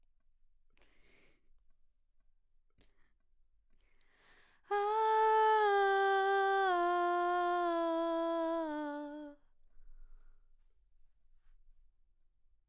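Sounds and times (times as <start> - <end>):
background vocals: 4.7 - 9.4.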